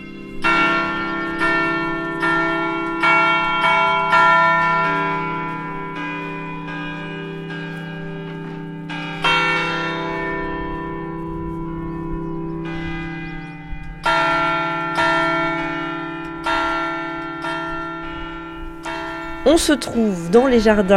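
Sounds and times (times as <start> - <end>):
abbey garden bells ringing a composed chime: 0.0 - 20.9
speech: 19.5 - 20.9.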